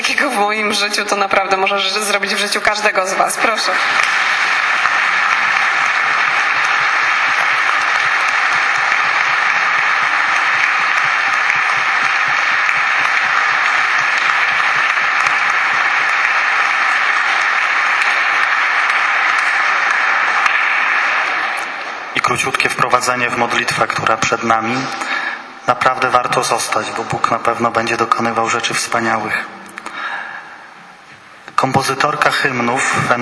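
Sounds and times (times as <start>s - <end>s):
speech: 0.2s - 4.4s, 22.4s - 25.1s, 25.7s - 29.6s, 31.9s - 33.2s
audience applause: 3.6s - 24.0s.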